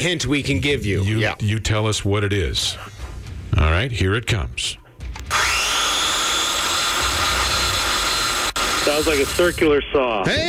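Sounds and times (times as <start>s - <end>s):
speech: 0.0s - 3.0s, 3.6s - 4.8s, 8.8s - 10.4s
circular saw: 5.3s - 9.6s.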